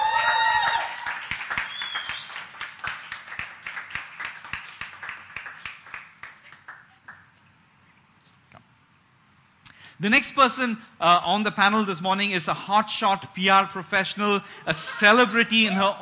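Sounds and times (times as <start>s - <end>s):
audience applause welcoming a panel speaker: 0.0s - 7.2s
speech: 10.0s - 16.0s
laughter: 14.6s - 16.0s.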